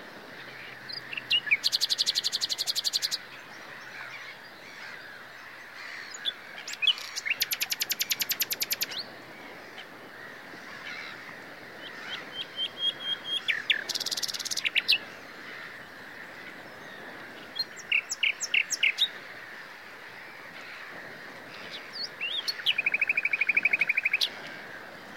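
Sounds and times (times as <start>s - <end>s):
common nightingale song: 0.5s - 9.3s, 11.8s - 15.2s, 16.4s - 19.2s, 21.6s - 24.5s.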